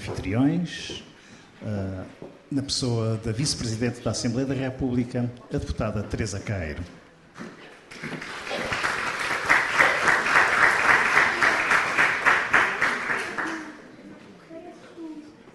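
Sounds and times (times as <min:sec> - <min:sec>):
speech: 0:00.1 - 0:08.3
audience applause: 0:07.9 - 0:13.8.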